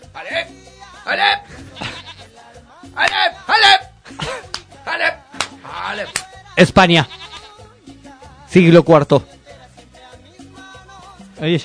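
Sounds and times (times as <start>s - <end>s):
speech: 0.2s - 1.9s, 5.9s - 7.2s, 8.5s - 9.3s, 11.4s - 11.6s
goat bleating: 1.0s - 2.4s, 5.6s - 7.9s.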